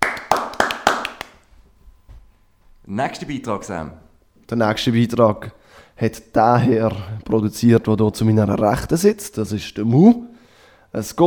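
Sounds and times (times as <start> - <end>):
hand clapping for a straw hat contest winner: 0.0 - 1.5
speech: 2.9 - 10.3, 10.9 - 11.2.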